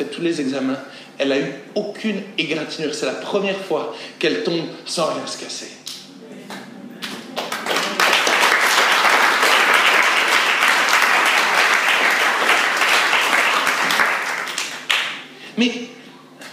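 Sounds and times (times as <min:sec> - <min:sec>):
speech: 0:00.0 - 0:05.8, 0:15.6 - 0:15.8
audience applause: 0:07.0 - 0:15.2.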